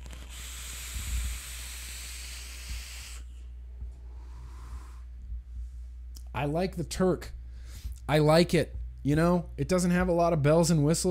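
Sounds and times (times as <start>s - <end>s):
vaping an e-cigarette: 0.0s - 3.3s
speech: 6.4s - 7.4s, 8.1s - 11.0s.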